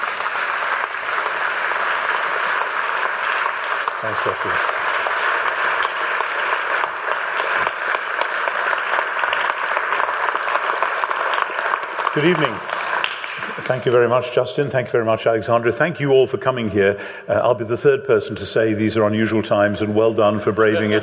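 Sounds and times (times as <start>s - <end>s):
audience applause: 0.0s - 14.6s
speech: 4.0s - 4.8s, 12.2s - 12.7s, 13.6s - 21.0s.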